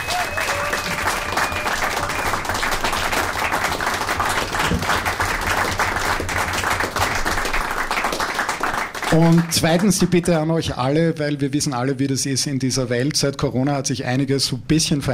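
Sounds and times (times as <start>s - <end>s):
audience applause: 0.0s - 9.8s
speech: 9.2s - 15.1s.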